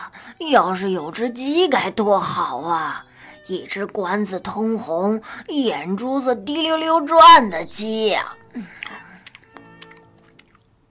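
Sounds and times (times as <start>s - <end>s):
speech: 0.4s - 9.0s
wolf crunching carrots: 8.6s - 10.7s.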